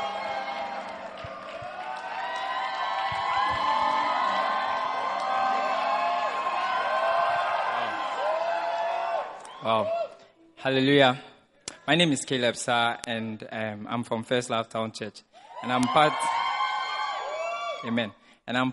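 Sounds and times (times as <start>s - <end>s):
church congregation cheering and whooping after a testimony: 0.0s - 10.2s, 15.4s - 17.9s
scattered clapping: 0.5s - 7.0s
speech: 9.6s - 10.0s, 10.6s - 11.3s, 11.9s - 16.4s, 17.8s - 18.7s.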